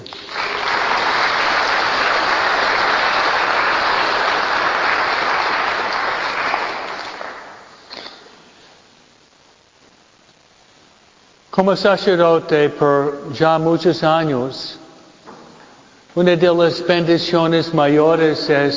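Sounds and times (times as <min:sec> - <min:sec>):
audience applause: 0:00.0 - 0:07.9
speech: 0:11.6 - 0:14.8, 0:16.2 - 0:18.7.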